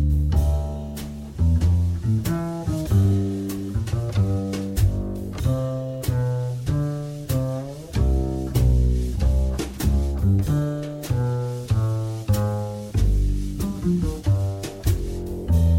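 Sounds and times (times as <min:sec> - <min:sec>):
jazz backing music: 0:00.0 - 0:15.7.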